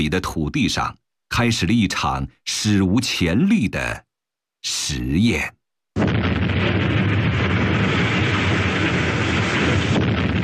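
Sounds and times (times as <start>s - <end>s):
speech: 0.0s - 7.6s
blasting explosions excavating a mountainside: 6.0s - 10.4s.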